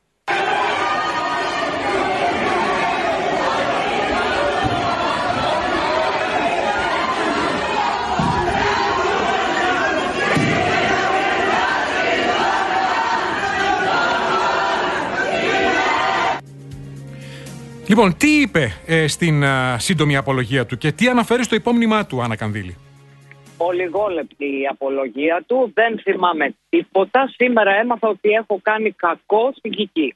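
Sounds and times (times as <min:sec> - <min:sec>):
crowd shouting and jeering outside court: 0:00.2 - 0:16.4
speech: 0:17.9 - 0:22.8, 0:23.6 - 0:30.1.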